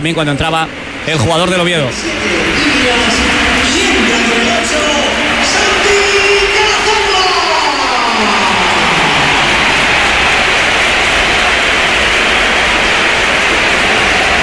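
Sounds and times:
speech: 0.0 - 5.1
stadium crowd ovation at the Bernabéu: 0.1 - 14.4.

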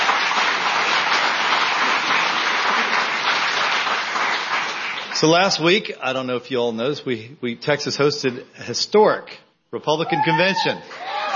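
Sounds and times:
audience round of applause: 0.0 - 5.6, 10.6 - 11.3
speech: 5.2 - 11.2.

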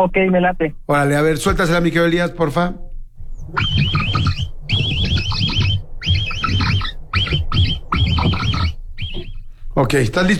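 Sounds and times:
speech: 0.0 - 2.8, 3.5 - 4.0, 9.8 - 10.3
capybara call: 3.2 - 9.6.

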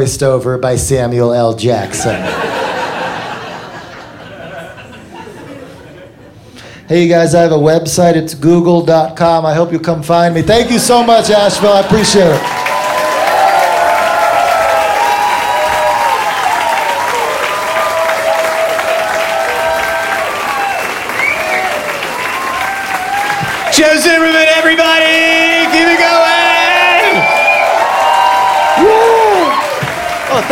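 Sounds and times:
speech: 0.0 - 2.8, 6.9 - 12.6
laughter: 1.8 - 6.6, 10.4 - 12.4
crowd clapping: 11.2 - 30.4.

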